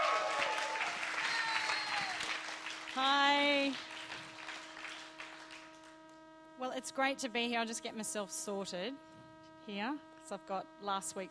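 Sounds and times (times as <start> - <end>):
church audience applauding to welcome a speaker: 0.0 - 5.9
speech: 6.8 - 11.3.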